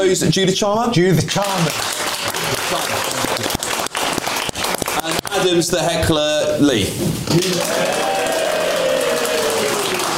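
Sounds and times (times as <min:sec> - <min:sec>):
speech: 0:00.0 - 0:03.5, 0:05.4 - 0:08.1
audience clapping at a live comedy event: 0:01.3 - 0:05.6, 0:07.3 - 0:10.1
cheers and voices: 0:07.4 - 0:10.1.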